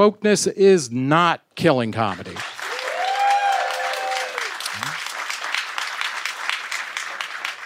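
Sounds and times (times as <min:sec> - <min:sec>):
speech: 0:00.0 - 0:02.5
large audience applause: 0:02.2 - 0:07.6
voiced cheer or whoop: 0:02.7 - 0:04.9.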